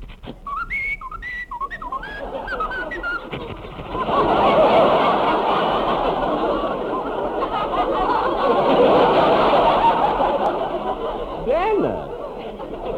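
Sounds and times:
short chirpy whistled notes: 0.4 - 4.2
broad sustained crowd noise: 1.5 - 12.9
laughter: 1.9 - 12.9.

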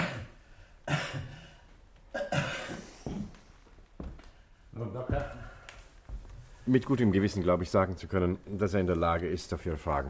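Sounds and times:
man coughing during a doctor's chest examination: 0.0 - 3.4
speech: 6.7 - 10.0.

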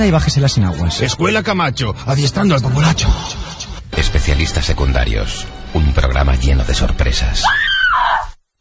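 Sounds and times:
speech: 0.0 - 8.4
person screaming: 7.4 - 8.4.

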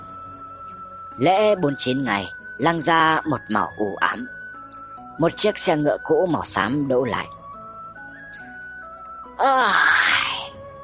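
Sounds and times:
speech: 1.2 - 4.4, 5.2 - 7.4, 9.4 - 9.9
long yawn: 9.4 - 10.5.

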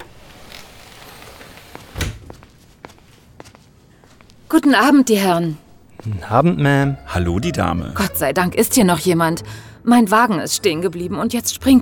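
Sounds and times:
door being opened: 0.0 - 2.5
speech: 4.5 - 11.7.

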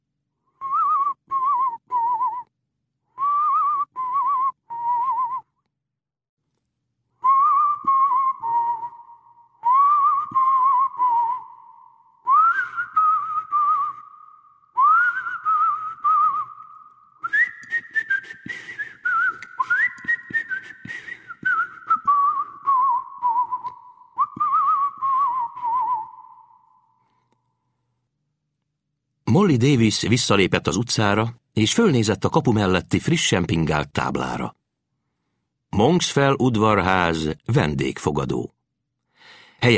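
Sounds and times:
man whistling softly: 0.5 - 2.5, 3.1 - 5.6, 7.2 - 27.0
speech: 29.4 - 34.6, 35.8 - 38.5, 39.6 - 39.7.

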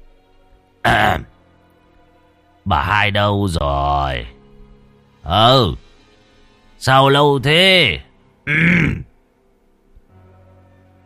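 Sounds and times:
old man's raspy cough: 0.9 - 1.3, 8.5 - 9.1
speech: 2.6 - 4.4, 5.2 - 5.8, 6.8 - 9.1.

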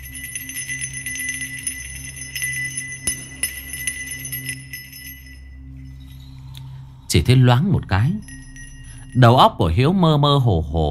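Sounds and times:
small bell hanging on a flag jingling: 0.0 - 6.8, 7.9 - 9.6
speech: 7.2 - 8.3, 9.2 - 10.8.

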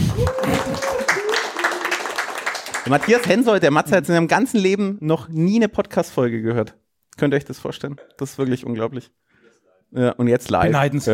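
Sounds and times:
thin sustained cheer: 0.0 - 2.1
audience applause: 0.0 - 3.5
speech: 2.8 - 9.2, 9.9 - 11.1.

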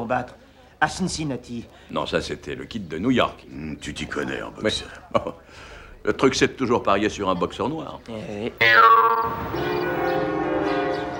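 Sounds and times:
speech: 0.1 - 10.3
loud bell ringing: 8.6 - 10.2
shimmering chimes: 8.6 - 10.2.

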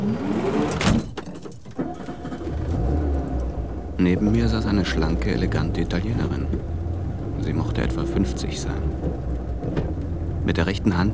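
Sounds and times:
small bus door sliding shut: 0.0 - 3.2
small bus engine rumbling: 0.0 - 11.1
speech: 4.0 - 6.8, 7.4 - 9.3, 10.5 - 11.1.

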